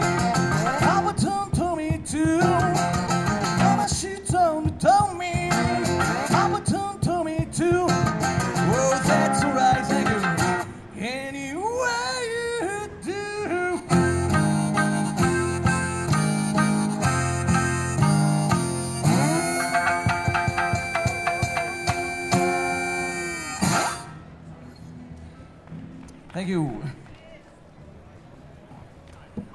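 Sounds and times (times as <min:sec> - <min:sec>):
busker playing Japanese blues guitar: 0:00.0 - 0:24.3
shamisen: 0:14.3 - 0:24.0.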